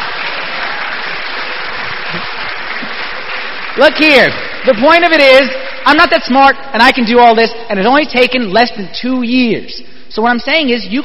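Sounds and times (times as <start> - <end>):
audience applause: 0.0 - 6.3
speech: 3.8 - 11.0.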